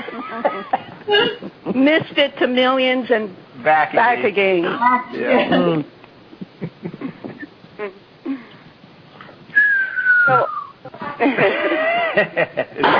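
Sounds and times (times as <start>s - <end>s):
laughter: 0.0s - 1.8s, 6.4s - 7.5s, 10.3s - 12.9s
speech: 0.3s - 6.0s, 7.8s - 8.0s, 10.3s - 10.6s, 11.2s - 12.9s
person whistling: 9.6s - 10.8s.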